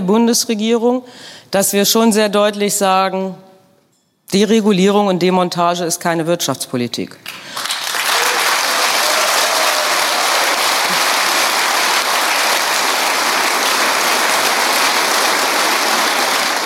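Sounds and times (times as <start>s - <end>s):
speech: 0.0s - 3.5s, 4.3s - 7.7s
audience applause at union assembly: 7.3s - 16.6s.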